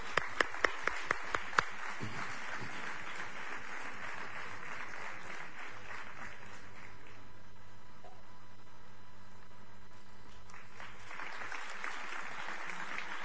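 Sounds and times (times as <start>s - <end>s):
audience applause: 0.0s - 7.3s, 10.4s - 13.2s.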